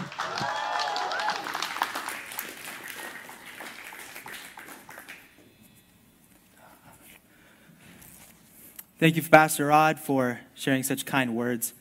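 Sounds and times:
church congregation applauding a student coming to the pulpit: 0:00.0 - 0:05.4
speech: 0:09.0 - 0:11.7.

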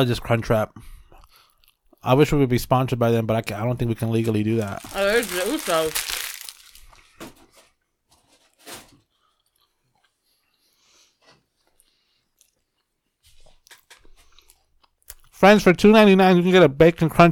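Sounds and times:
speech: 0:00.0 - 0:01.0, 0:02.0 - 0:06.2, 0:15.4 - 0:17.2
breathing: 0:00.8 - 0:01.8, 0:06.8 - 0:07.7, 0:09.0 - 0:12.6, 0:13.3 - 0:14.7
chewing a crunchy Taco Bell Crunchwrap: 0:04.3 - 0:07.1, 0:09.2 - 0:10.7, 0:11.6 - 0:15.4.

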